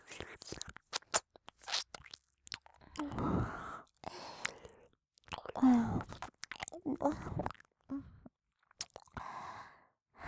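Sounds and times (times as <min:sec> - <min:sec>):
ear licking: 0:00.2 - 0:07.7, 0:08.8 - 0:09.2.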